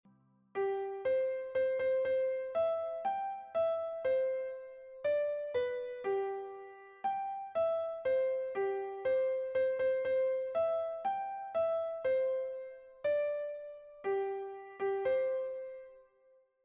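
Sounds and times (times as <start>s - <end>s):
nursery rhyme on piano: 0.6s - 16.1s.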